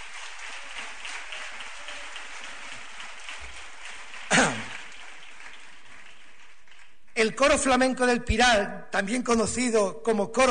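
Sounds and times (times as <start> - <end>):
audience applause: 0.0 - 7.2
speech: 7.2 - 10.4.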